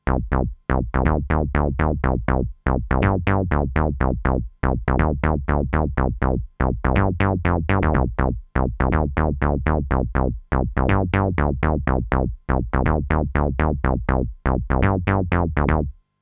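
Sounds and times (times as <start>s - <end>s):
dry Juno synth sequence with Boss CE-300: 0.0s - 15.9s.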